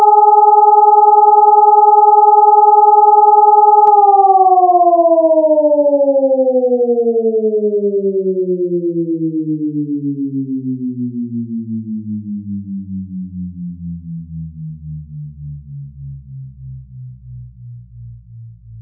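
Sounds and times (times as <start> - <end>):
all-clear siren: 0.0 - 13.4.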